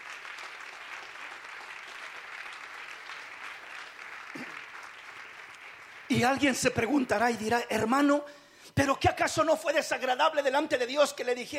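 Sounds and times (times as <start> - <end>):
audience applause: 0.0 - 7.0
speech: 4.4 - 4.6, 6.1 - 11.5.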